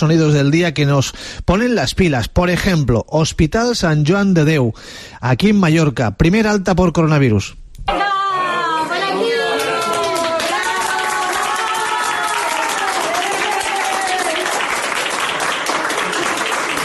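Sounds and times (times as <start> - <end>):
speech: 0.0 - 8.1
hospital staff applauding in a corridor: 9.0 - 16.8.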